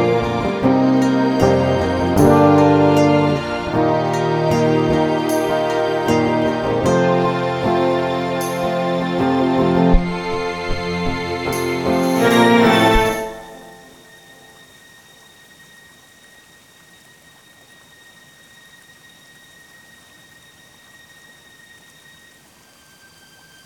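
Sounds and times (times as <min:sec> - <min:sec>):
orchestral backing music: 0:00.0 - 0:14.9.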